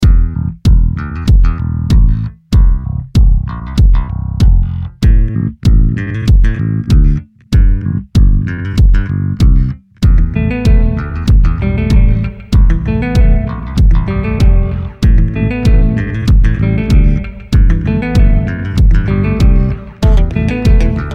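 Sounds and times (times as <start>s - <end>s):
groovy music: 0.0s - 21.1s.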